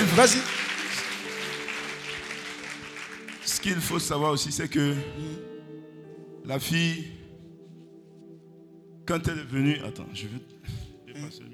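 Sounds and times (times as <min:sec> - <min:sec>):
church congregation applauding: 0:00.0 - 0:05.4
sustained musical tones: 0:00.0 - 0:11.5
speech: 0:00.2 - 0:00.6, 0:03.6 - 0:05.5, 0:06.4 - 0:07.2, 0:09.1 - 0:11.5.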